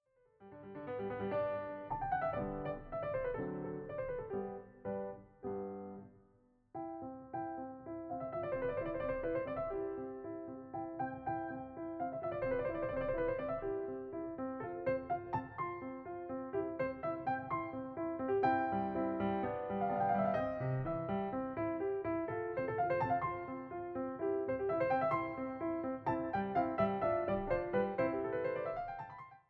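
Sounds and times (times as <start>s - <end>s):
piano sonata in C major allegro moderato: 0.0s - 29.4s.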